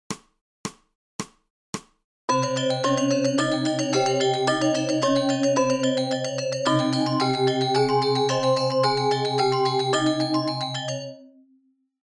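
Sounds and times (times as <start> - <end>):
musical scale: 2.3 - 11.3.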